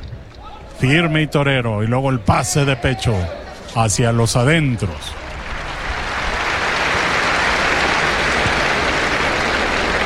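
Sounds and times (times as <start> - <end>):
speech: 0.8 - 5.2
lukewarm applause from bullring spectators: 5.1 - 10.0.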